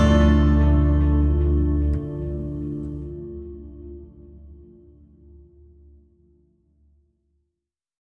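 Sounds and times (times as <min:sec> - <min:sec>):
acoustic band playing: 0:00.0 - 0:03.4.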